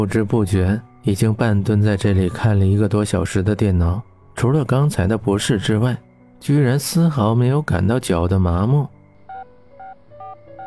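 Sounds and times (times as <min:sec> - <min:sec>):
speech: 0:00.0 - 0:09.0
telephone number being dialed, keypad tones: 0:09.3 - 0:10.6.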